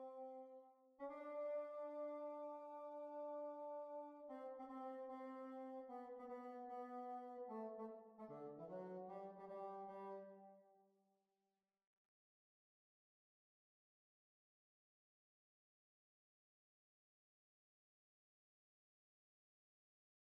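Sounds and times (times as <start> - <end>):
hornpipe folk tune: 0.0 - 10.4.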